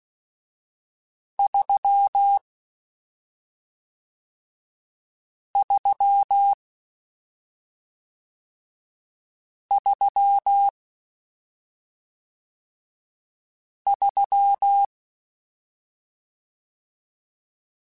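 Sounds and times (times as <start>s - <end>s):
Morse code CW code groups: 1.4s - 2.4s, 5.6s - 6.6s, 9.7s - 10.7s, 13.9s - 14.9s.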